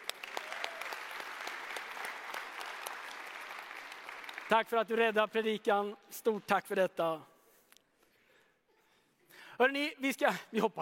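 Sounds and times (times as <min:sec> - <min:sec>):
audience applause: 0:00.0 - 0:05.1
speech: 0:04.5 - 0:07.3, 0:09.6 - 0:10.8.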